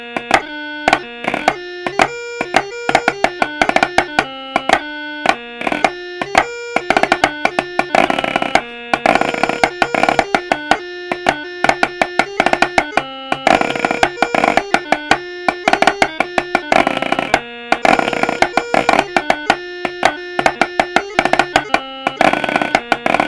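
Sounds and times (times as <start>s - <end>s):
snare chanter playing: 0.0s - 23.2s.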